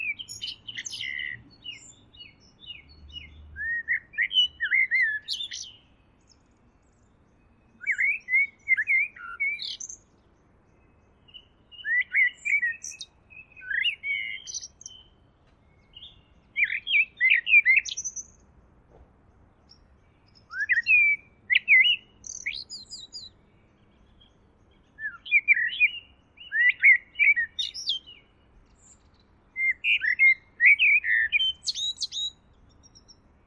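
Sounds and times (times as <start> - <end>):
bird twittering song: 0.0 - 33.4
faint background noise: 0.0 - 33.4.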